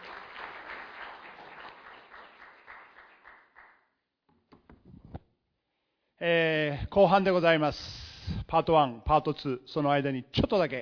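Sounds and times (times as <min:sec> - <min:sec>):
audience applause: 0:00.0 - 0:03.8
speech: 0:06.2 - 0:10.8.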